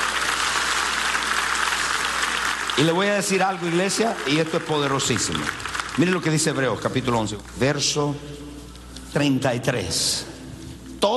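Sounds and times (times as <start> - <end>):
audience applause: 0.0 - 6.8
speech: 2.8 - 8.4, 9.1 - 10.3, 11.0 - 11.1.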